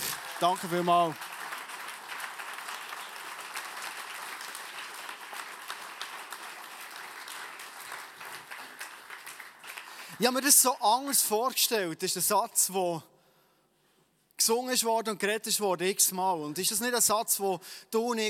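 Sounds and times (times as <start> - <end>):
audience applause: 0.0 - 10.5
speech: 0.4 - 1.3, 10.2 - 13.1, 14.4 - 18.2.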